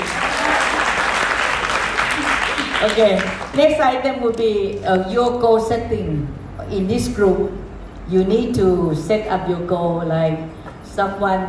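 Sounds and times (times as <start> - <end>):
crowd applause: 0.0 - 3.5
speech: 2.8 - 11.4.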